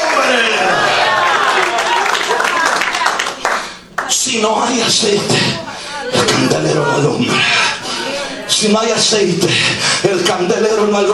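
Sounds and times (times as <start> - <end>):
audience applause: 0.0 - 9.2
laughter: 0.0 - 11.1
speech: 4.3 - 5.7, 6.3 - 7.7, 8.6 - 11.1.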